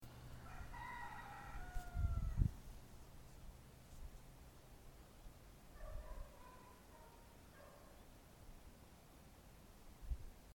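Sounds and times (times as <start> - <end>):
rooster in Greece: 0.4 - 2.5
dogs in Greece: 5.8 - 8.0.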